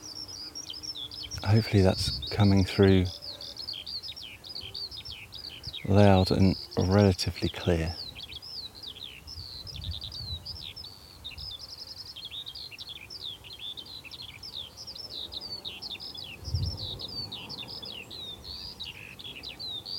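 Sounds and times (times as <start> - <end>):
skylark singing: 0.0 - 19.9
speech: 1.4 - 3.2, 5.9 - 8.0
wind rumble: 16.4 - 17.0.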